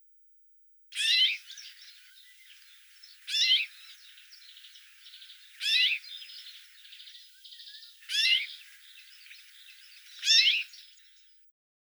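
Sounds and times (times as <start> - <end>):
Common rosefinch singing: 1.0 - 11.4.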